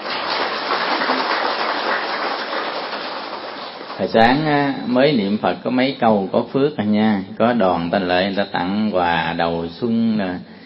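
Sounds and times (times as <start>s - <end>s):
audience clapping: 0.0s - 4.7s
speech: 4.0s - 10.5s.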